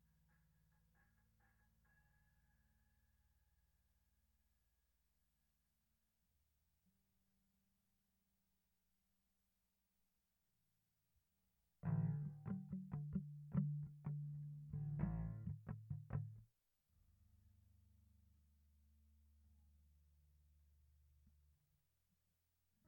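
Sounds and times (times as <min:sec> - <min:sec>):
bass: 0:11.8 - 0:16.4.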